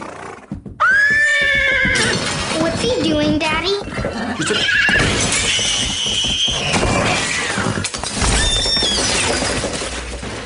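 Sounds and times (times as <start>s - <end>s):
pony whinnying in a holiday eBay commercial: 0.0s - 2.2s, 3.9s - 9.2s
speech: 2.8s - 4.9s.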